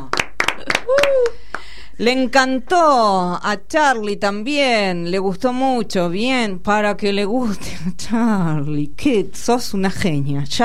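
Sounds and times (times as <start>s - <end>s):
applause: 0.0s - 1.8s
speech: 2.0s - 10.6s.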